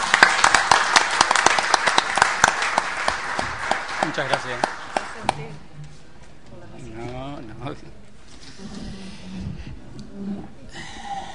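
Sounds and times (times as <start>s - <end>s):
audience applause: 0.0s - 5.5s
speech: 4.2s - 5.7s.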